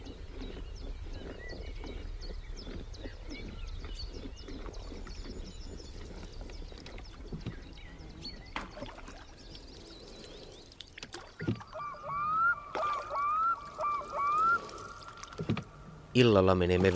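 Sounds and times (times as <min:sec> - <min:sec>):
oars splashing in water: 0:00.0 - 0:16.9
oarlock squeaking: 0:11.4 - 0:16.9
speech: 0:16.2 - 0:16.9.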